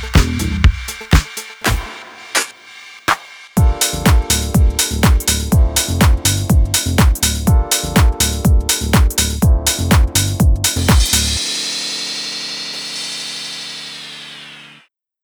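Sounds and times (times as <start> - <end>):
house and deep house drums: 0.0 - 11.9.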